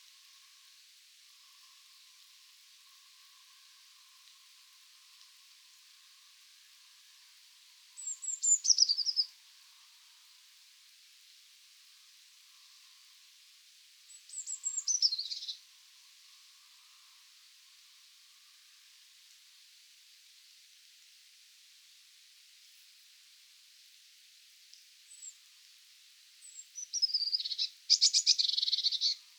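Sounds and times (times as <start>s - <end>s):
Eurasian blue tit Cyanistes caeruleus churring: 27.0s - 29.2s.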